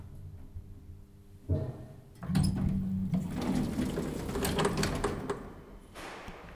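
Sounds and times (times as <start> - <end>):
elevator: 1.5 - 6.5.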